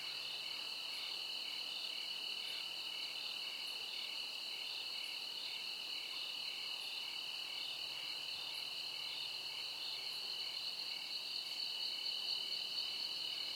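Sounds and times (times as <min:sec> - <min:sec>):
crickets chirping: 0:00.1 - 0:13.5.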